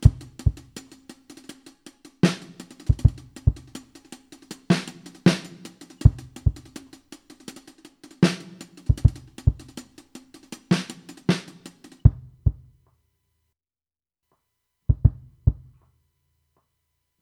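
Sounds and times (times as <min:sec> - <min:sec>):
80BPM loops and beats: 0:00.0 - 0:01.5, 0:02.2 - 0:12.3.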